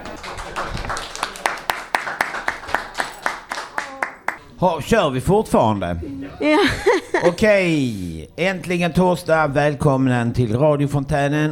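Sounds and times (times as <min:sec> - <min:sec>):
audience clapping and cheering: 0:00.0 - 0:04.4
speech: 0:04.6 - 0:11.4
laughter: 0:06.1 - 0:08.1.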